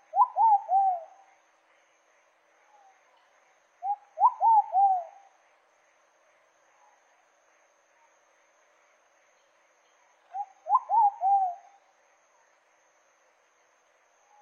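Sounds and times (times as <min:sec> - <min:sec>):
pigeon cooing song: 0:00.1 - 0:01.1, 0:04.2 - 0:05.1, 0:10.3 - 0:11.7.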